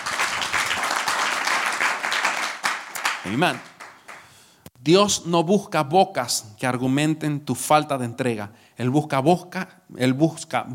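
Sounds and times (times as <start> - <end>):
audience applauding: 0.0 - 4.4
speech: 3.2 - 3.7, 4.8 - 10.7.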